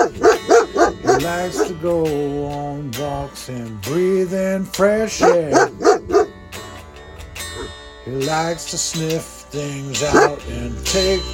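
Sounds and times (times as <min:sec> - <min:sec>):
dog barking: 0:00.0 - 0:01.8, 0:05.1 - 0:06.6, 0:07.4 - 0:07.8, 0:10.0 - 0:10.5
speech: 0:01.2 - 0:06.0, 0:08.1 - 0:11.3.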